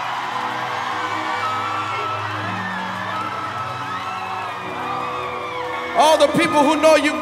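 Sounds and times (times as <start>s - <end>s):
crowd cheering and whooping: 0.0s - 7.2s
speech: 6.0s - 7.2s.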